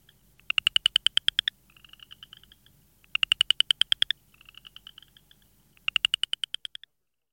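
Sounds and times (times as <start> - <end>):
Southern chorus frog calling: 0.0 - 6.9.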